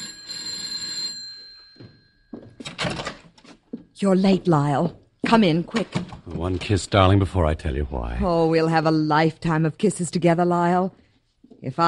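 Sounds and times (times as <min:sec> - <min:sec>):
doorbell ringing: 0:00.0 - 0:02.9
speech: 0:04.0 - 0:11.0, 0:11.6 - 0:11.8.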